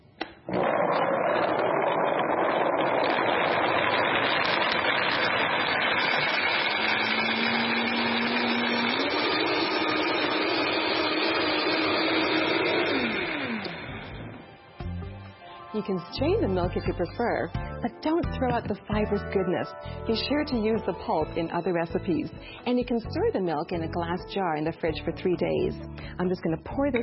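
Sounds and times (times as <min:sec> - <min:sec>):
Vitamix blender whirring while blending nut milk: 0:00.5 - 0:14.9
speech: 0:15.8 - 0:27.0.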